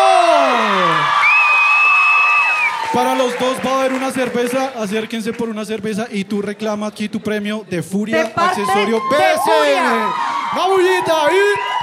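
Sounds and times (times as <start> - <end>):
whoops and shouts: 0.0 - 3.2, 8.2 - 11.8
crowd cheering: 0.0 - 5.6, 8.2 - 11.8
speech: 3.0 - 11.7.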